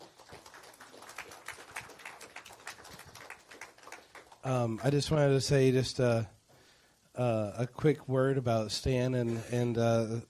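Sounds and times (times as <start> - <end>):
audience applause: 0.0 - 4.8
speech: 4.4 - 6.4, 7.2 - 10.2.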